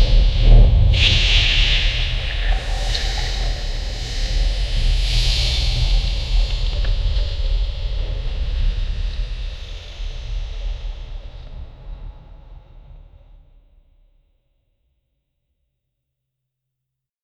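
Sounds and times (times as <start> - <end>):
dark suspense terror ambience: 0.0 - 11.7.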